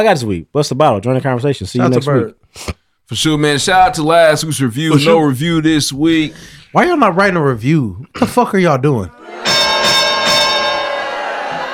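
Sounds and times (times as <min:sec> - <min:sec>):
speech: 0:00.0 - 0:09.6
bell sound effect from a button: 0:09.4 - 0:11.2.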